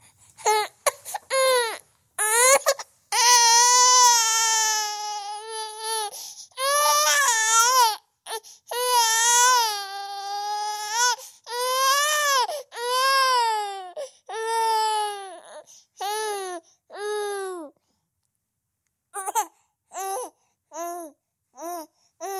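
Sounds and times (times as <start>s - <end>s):
newborn baby crying: 0.4s - 17.8s, 19.2s - 22.3s.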